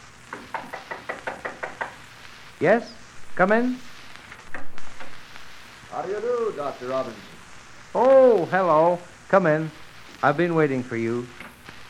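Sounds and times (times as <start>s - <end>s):
knocking on a wooden door: 0.3s - 2.0s
speech: 2.6s - 3.9s, 6.0s - 7.3s, 7.9s - 11.4s.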